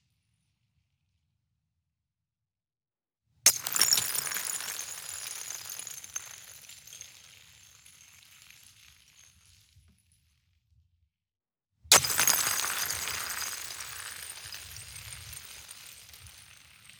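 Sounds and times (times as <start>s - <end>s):
ice dropping and shattering outdoors: 3.5s - 9.4s, 11.9s - 16.9s.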